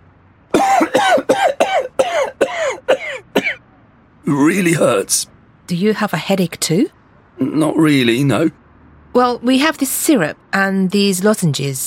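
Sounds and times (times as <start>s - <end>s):
man coughing: 0.6s - 3.6s
speech: 4.3s - 11.8s.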